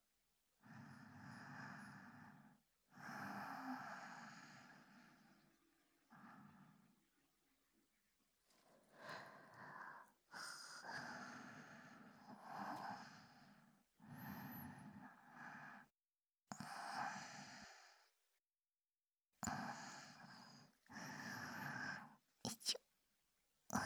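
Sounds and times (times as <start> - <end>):
breath loop on left recorded with binaural microphone: 0.6 - 5.5, 6.1 - 6.9, 8.6 - 15.9, 16.6 - 18.2, 19.5 - 22.8.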